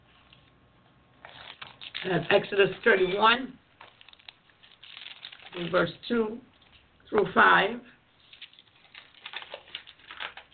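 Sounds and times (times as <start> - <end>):
thin pages of a Bible turning: 1.2 - 5.9, 8.2 - 10.5
speech: 2.0 - 3.6, 5.6 - 6.5, 7.1 - 8.0.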